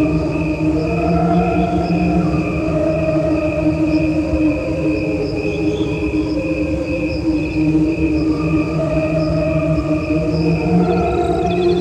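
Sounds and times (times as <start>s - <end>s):
crickets trilling: 0.0s - 11.7s.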